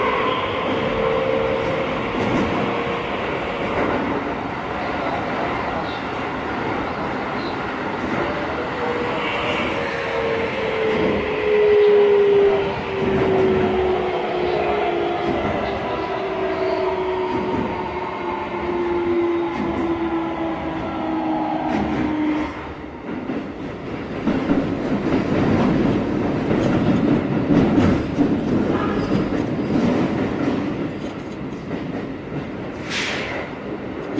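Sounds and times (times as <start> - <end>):
Keikyu 1000 electric train with Siemens VVVF inverter: 0.0 - 34.1.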